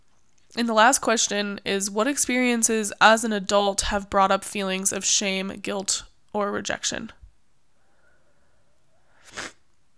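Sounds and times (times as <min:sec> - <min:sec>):
speech: 0:00.6 - 0:07.2
sniffle: 0:09.0 - 0:09.6.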